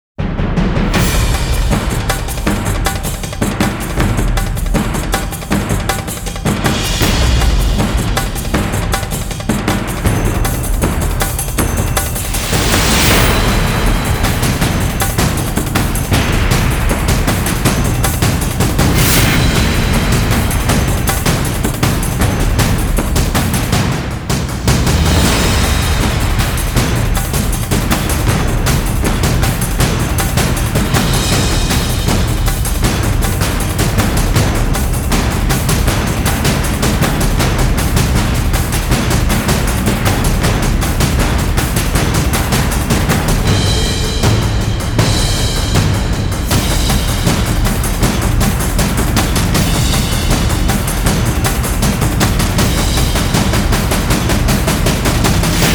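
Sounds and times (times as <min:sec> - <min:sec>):
drums: 0:00.2 - 0:55.7.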